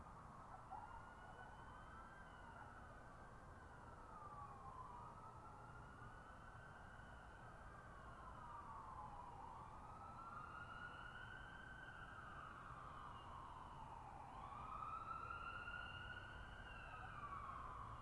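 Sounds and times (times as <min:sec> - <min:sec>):
coyotes in a valley: 0:00.0 - 0:02.8
sirens in a valley: 0:00.0 - 0:18.0.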